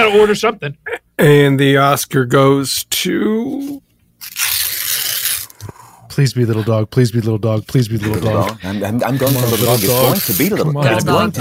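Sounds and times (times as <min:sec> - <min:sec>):
speech: 0:00.0 - 0:03.8, 0:04.4 - 0:04.6, 0:06.2 - 0:11.3
paper envelope being torn open: 0:04.2 - 0:05.6, 0:09.1 - 0:10.6.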